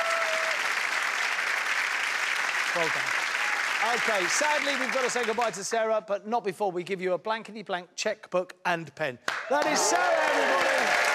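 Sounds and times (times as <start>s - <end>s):
studio audience applause for a departing contestant: 0.0s - 5.8s, 9.3s - 11.1s
speech: 2.8s - 3.2s, 3.8s - 11.1s.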